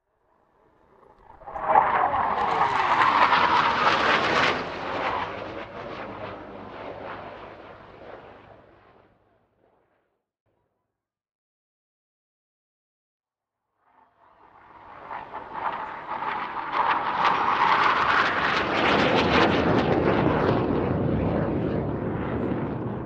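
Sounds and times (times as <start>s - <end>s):
Hawk jet airplane flying fast overhead: 0.4s - 9.3s, 14.1s - 23.0s.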